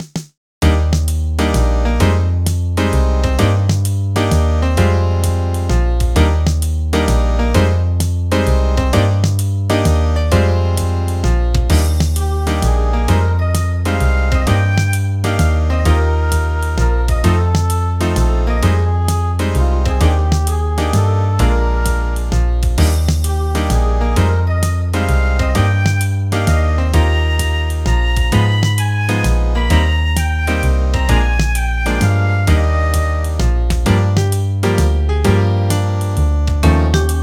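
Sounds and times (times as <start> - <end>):
jazz music: 0.6 - 37.2.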